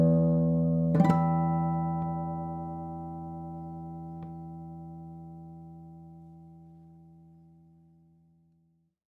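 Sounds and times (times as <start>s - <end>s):
Emerald X20 Artisan Series Woody Amber steel string flattop guitar: 0.0s - 7.0s.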